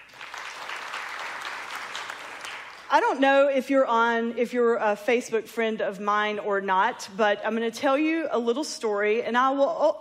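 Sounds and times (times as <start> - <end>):
crowd clapping: 0.0 - 2.9
speech: 2.9 - 9.9.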